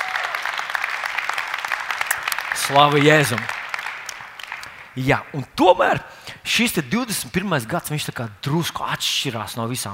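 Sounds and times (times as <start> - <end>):
audience applause: 0.0 - 5.0
speech: 2.6 - 3.6, 5.0 - 9.9.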